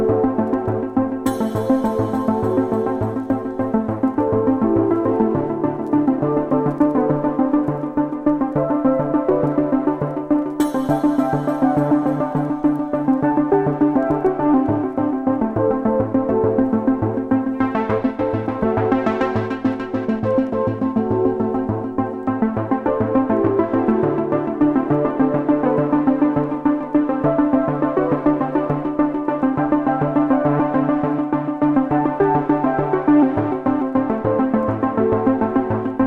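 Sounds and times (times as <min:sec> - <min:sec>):
ambient mix: 0:00.0 - 0:36.0.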